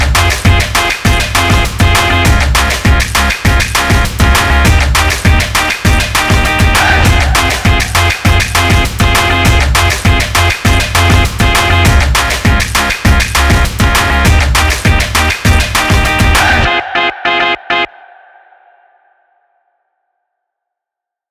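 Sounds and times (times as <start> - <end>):
stomping beats: 0.0 - 16.7.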